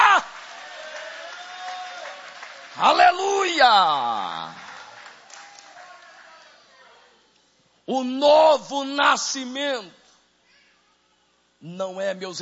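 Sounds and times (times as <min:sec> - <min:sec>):
audience applauding: 0:00.0 - 0:06.6
speech: 0:02.8 - 0:04.6, 0:07.9 - 0:10.0, 0:11.6 - 0:12.4.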